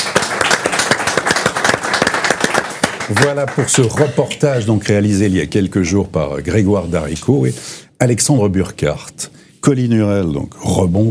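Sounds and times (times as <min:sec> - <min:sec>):
audience applause: 0:00.0 - 0:04.4
speech: 0:03.1 - 0:11.0.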